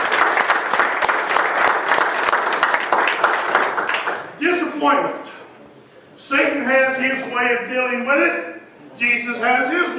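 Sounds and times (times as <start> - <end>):
audience applause: 0.0 - 4.3
speech: 4.8 - 5.4, 6.3 - 8.4, 9.0 - 9.9.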